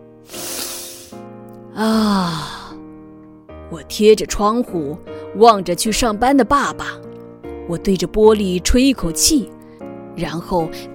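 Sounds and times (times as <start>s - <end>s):
deep sniff inhaling from a bottle: 0.2s - 1.3s
speech: 1.8s - 2.6s, 3.7s - 7.0s, 7.7s - 9.6s, 10.2s - 10.9s.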